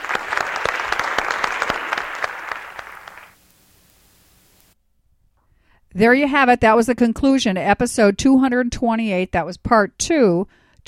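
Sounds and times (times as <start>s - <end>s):
audience applause: 0.0s - 3.4s
speech: 6.0s - 10.8s.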